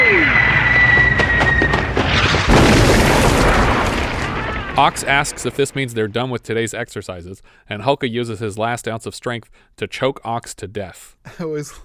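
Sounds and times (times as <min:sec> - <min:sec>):
mortar shells exploding and demolishing a rope-climbing platform in a military training exercise: 0:00.2 - 0:06.4
speech: 0:04.8 - 0:11.8.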